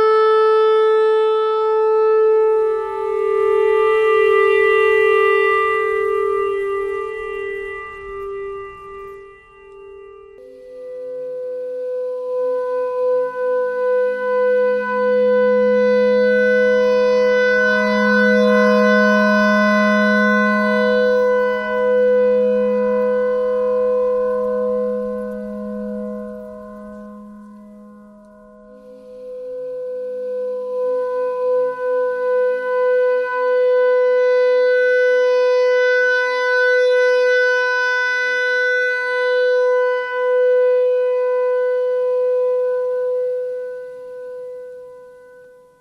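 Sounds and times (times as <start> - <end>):
clarinet notes: 0.0 - 45.7
clarinet thread noise: 2.2 - 32.4.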